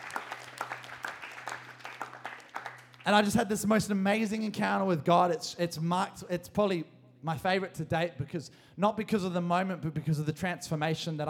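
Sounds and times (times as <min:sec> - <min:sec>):
audience clapping: 0:00.0 - 0:03.4
speech: 0:03.1 - 0:11.2.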